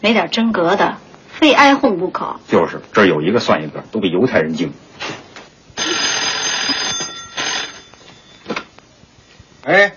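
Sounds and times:
speech: 0:00.0 - 0:05.2, 0:09.6 - 0:09.9
telephone ringing: 0:05.8 - 0:08.6.

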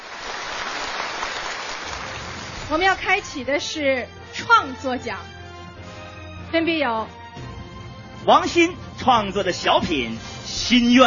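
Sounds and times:
applause: 0:00.0 - 0:02.7
speech: 0:02.7 - 0:05.4, 0:06.5 - 0:07.5, 0:08.2 - 0:11.0.

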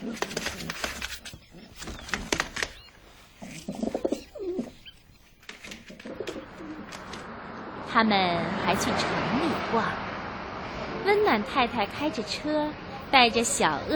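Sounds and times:
pigeons cooing: 0:00.0 - 0:07.2
rustling and fluttering: 0:00.0 - 0:07.3
speech: 0:08.0 - 0:10.0, 0:11.1 - 0:13.9.

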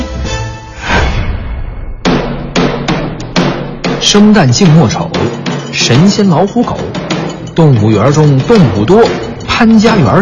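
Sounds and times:
gavel strikes: 0:02.0 - 0:09.6
speech: 0:04.1 - 0:07.0, 0:07.6 - 0:10.1.

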